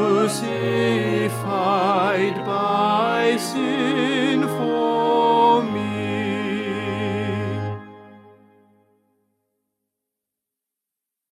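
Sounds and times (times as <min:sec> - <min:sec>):
tenor singing: 0:00.0 - 0:08.2.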